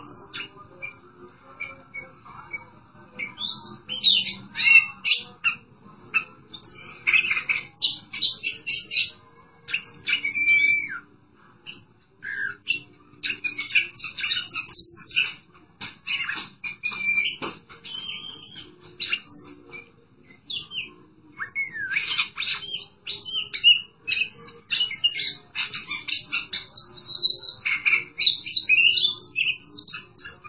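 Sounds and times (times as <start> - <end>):
Oriental magpie-robin song: 0.0 - 15.4, 16.0 - 30.4.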